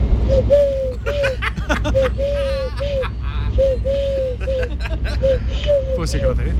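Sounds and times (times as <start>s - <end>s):
people laughing: 1.0s - 5.7s
person imitating turtle dove coos: 1.1s - 5.8s
speech: 6.0s - 6.5s.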